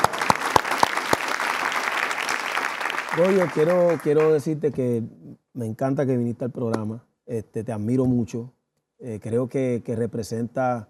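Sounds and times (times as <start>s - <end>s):
studio applause: 0.0s - 4.6s
speech: 3.2s - 10.8s.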